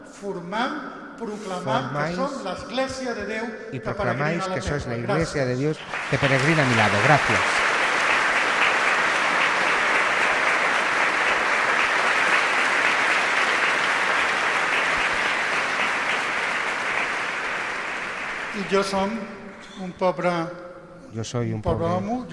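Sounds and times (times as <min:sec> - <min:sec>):
speech: 0:00.2 - 0:07.6, 0:18.6 - 0:22.3
audience applause: 0:05.8 - 0:19.2.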